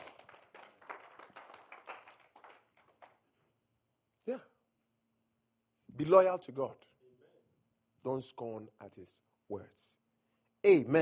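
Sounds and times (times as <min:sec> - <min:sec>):
audience clapping: 0:00.0 - 0:03.4
speech: 0:04.3 - 0:04.5, 0:06.0 - 0:06.9, 0:08.0 - 0:10.0, 0:10.6 - 0:11.0.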